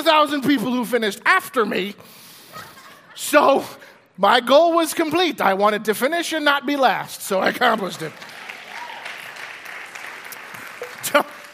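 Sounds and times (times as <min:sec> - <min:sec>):
speech: 0:00.0 - 0:08.4, 0:11.1 - 0:11.4
laughter: 0:02.5 - 0:03.6, 0:10.8 - 0:11.5
audience clapping: 0:07.4 - 0:11.5.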